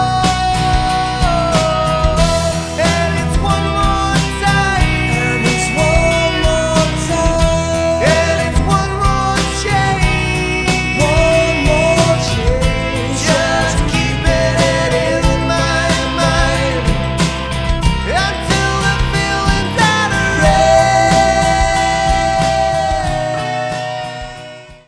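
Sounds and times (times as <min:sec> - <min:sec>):
acoustic rock track: 0:00.0 - 0:24.8.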